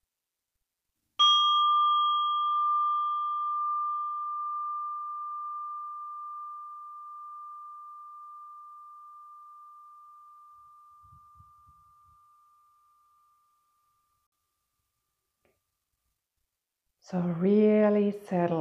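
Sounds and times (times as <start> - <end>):
meditation bell ringing: 1.2 - 13.4
speech: 17.1 - 18.5.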